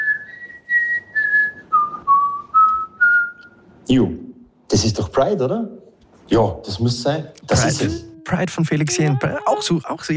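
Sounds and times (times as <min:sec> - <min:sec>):
person whistling a song melody: 0:00.0 - 0:03.6
speech: 0:03.9 - 0:04.2, 0:04.8 - 0:10.1.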